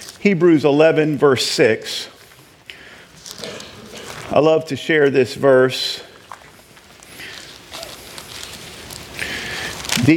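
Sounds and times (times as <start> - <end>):
Bible pages turning: 0.0 - 0.4, 2.2 - 4.8, 6.2 - 10.1
speech: 0.2 - 2.2, 4.3 - 6.1.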